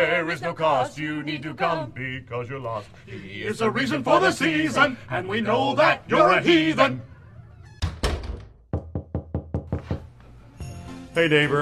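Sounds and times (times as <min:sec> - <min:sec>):
speech: 0:00.1 - 0:07.1, 0:11.2 - 0:11.6
knocking on a garage door: 0:07.8 - 0:10.1.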